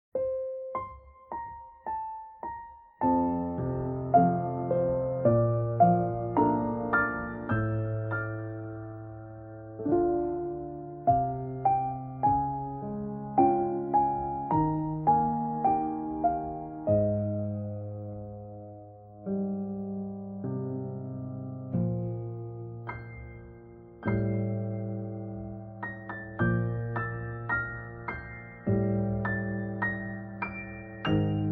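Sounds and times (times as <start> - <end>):
relaxing piano cover: 0.1 - 31.5.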